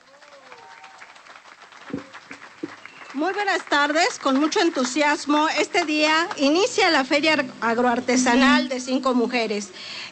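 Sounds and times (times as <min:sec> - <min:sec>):
audience applause: 0:00.0 - 0:05.3
speech: 0:03.2 - 0:10.1.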